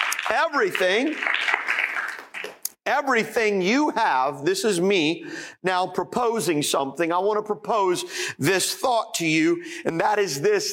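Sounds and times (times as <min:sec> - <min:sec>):
audience clapping: 0:00.0 - 0:02.8
speech: 0:00.3 - 0:01.6, 0:02.9 - 0:10.7.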